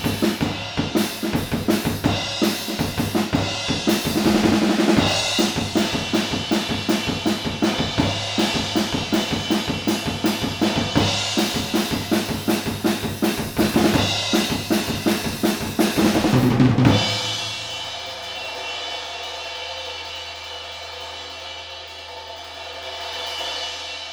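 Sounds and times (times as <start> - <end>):
drums: 0.0 - 24.1.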